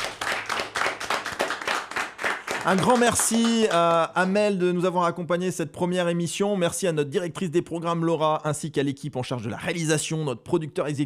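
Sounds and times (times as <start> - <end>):
audience applauding: 0.0 - 4.4
speech: 2.6 - 11.0.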